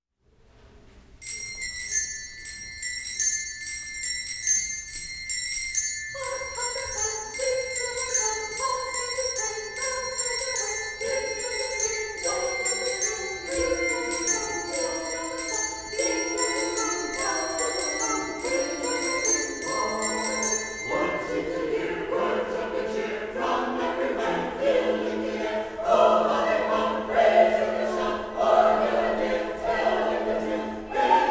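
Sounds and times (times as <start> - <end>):
handbell choir ringing: 1.2 - 22.2
sanctuary choir singing: 6.1 - 31.3.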